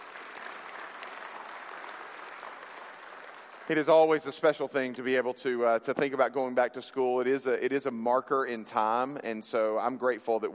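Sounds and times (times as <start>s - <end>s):
audience applauding: 0.0s - 5.0s
speech: 3.7s - 10.5s.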